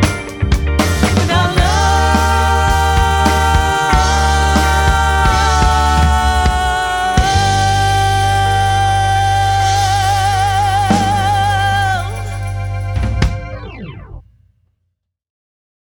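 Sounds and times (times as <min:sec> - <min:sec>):
rock pop band playing: 0:00.0 - 0:13.8.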